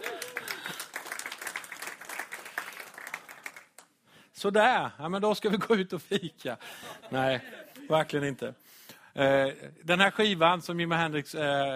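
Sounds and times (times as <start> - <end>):
applause: 0.0 - 3.9
speech: 4.4 - 11.7.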